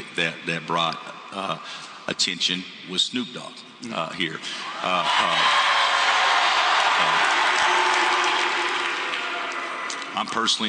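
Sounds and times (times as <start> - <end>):
speech: 0.2 - 5.7, 7.0 - 7.4, 10.2 - 10.6
crowd cheering and applause: 4.6 - 10.4.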